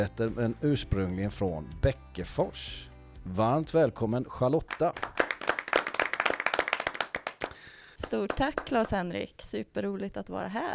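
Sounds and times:
speech: 0:00.0 - 0:05.2, 0:08.1 - 0:10.7
applause: 0:04.6 - 0:09.0.

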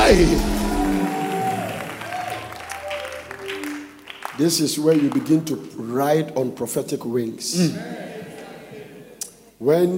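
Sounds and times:
audience cheering: 0:00.0 - 0:04.2
audience clapping: 0:00.0 - 0:05.6
speech: 0:00.1 - 0:00.6, 0:04.4 - 0:08.1, 0:09.6 - 0:09.9.

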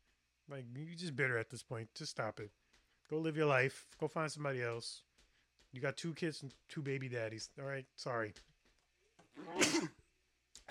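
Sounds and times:
speech: 0:00.5 - 0:05.1, 0:05.7 - 0:08.5, 0:09.4 - 0:10.0
sneeze: 0:09.4 - 0:10.0.

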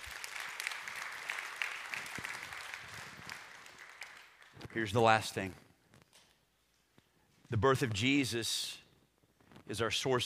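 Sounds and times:
audience applause: 0:00.0 - 0:04.8
speech: 0:04.7 - 0:05.6, 0:07.5 - 0:08.8, 0:09.7 - 0:10.2.

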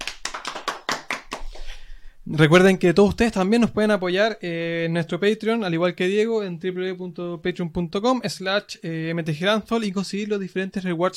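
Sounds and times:
applause: 0:00.0 - 0:01.7
speech: 0:02.3 - 0:11.1.

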